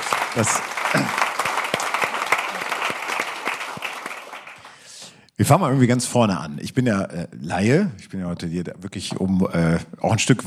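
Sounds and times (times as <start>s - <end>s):
audience clapping: 0.0s - 5.1s
speech: 0.4s - 1.3s, 5.4s - 10.4s.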